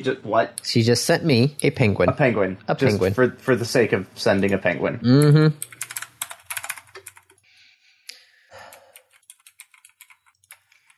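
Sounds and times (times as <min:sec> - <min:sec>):
speech: 0:00.0 - 0:05.8
rapid typing and clicking on a computer keyboard: 0:05.6 - 0:07.4, 0:08.7 - 0:10.9.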